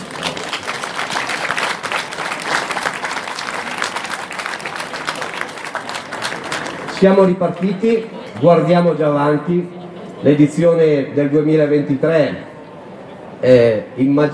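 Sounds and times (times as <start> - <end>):
audience applause: 0.0 - 7.8
speech: 7.0 - 12.5, 13.4 - 14.3.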